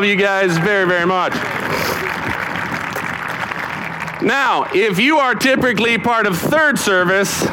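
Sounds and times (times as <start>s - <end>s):
speech: 0.0s - 2.1s, 4.2s - 7.5s
audience applause: 0.0s - 5.4s.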